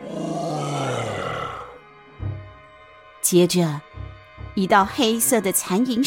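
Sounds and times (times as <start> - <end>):
ghost's bloodcurdling scream: 0.0 - 1.8
speech: 3.3 - 3.9, 4.6 - 6.0.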